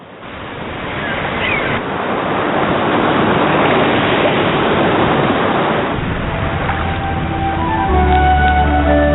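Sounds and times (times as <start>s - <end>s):
sea waves washing against a rock cliff: 0.0s - 9.0s.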